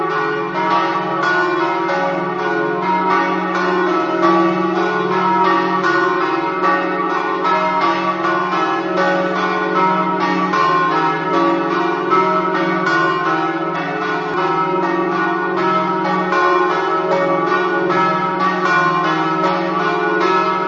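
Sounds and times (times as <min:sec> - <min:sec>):
church bells ringing in Moggio: 0:00.0 - 0:20.6.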